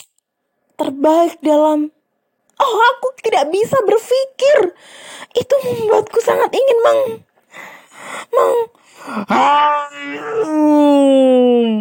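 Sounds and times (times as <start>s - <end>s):
speech: 0.8s - 2.0s, 2.6s - 11.7s
human voice imitating a lion's roar: 8.3s - 11.7s.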